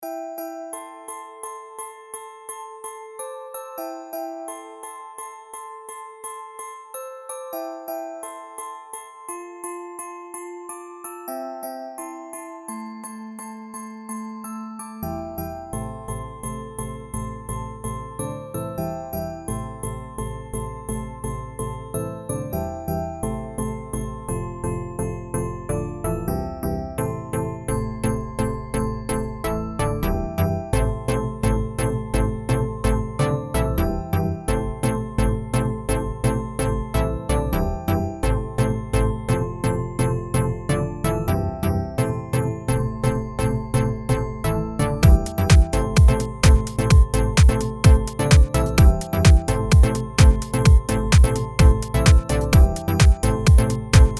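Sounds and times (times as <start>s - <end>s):
glockenspiel: 0.0s - 54.1s
deep house mix: 45.0s - 54.1s.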